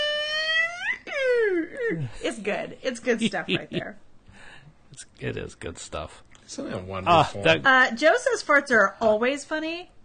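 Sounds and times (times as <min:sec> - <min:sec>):
man imitating humpback whale call: 0:00.0 - 0:02.2
speech: 0:01.9 - 0:04.1, 0:04.9 - 0:10.0.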